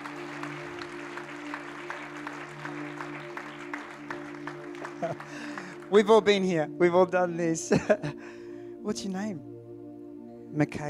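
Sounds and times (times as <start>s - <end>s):
audience applause: 0.0s - 6.0s
speech: 5.0s - 9.5s, 10.5s - 10.8s.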